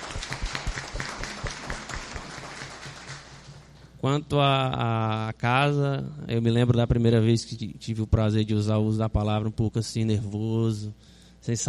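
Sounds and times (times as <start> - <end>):
audience applause: 0.0 - 3.5
speech: 4.0 - 11.6.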